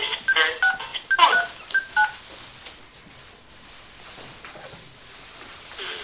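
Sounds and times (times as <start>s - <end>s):
telephone touch-tone dialing: 0.1s - 2.2s.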